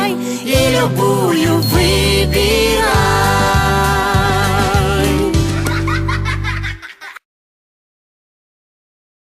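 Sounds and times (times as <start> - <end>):
song about professions: 0.0 - 6.3
laughter: 5.4 - 7.2.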